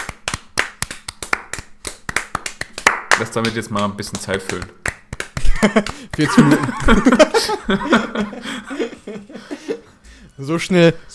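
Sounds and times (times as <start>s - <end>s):
hand clapping: 0.0s - 7.4s
speech: 3.2s - 4.8s, 5.6s - 9.8s, 10.4s - 11.1s
laughter: 5.4s - 10.0s.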